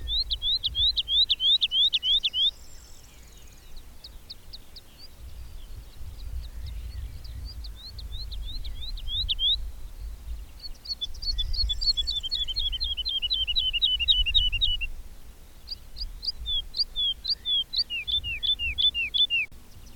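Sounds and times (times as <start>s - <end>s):
bird singing whistles: 0.0s - 3.7s, 6.4s - 9.6s, 10.6s - 14.9s, 15.7s - 19.9s
faint low noise: 0.0s - 19.9s.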